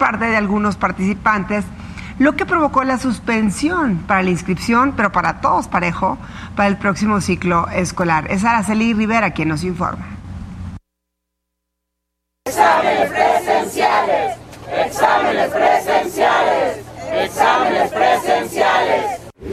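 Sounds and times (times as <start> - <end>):
speech: 0.0 - 10.2
protest march crowd chanting slogans: 12.5 - 19.3.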